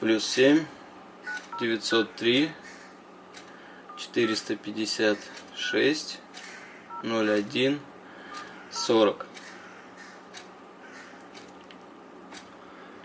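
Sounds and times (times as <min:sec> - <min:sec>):
speech: 0:00.0 - 0:00.8, 0:01.6 - 0:02.6, 0:04.0 - 0:06.2, 0:07.0 - 0:07.9, 0:08.7 - 0:09.3
DTMF telephone keypad tones as a number is dialed: 0:01.3 - 0:01.7, 0:06.9 - 0:07.1, 0:08.3 - 0:09.0.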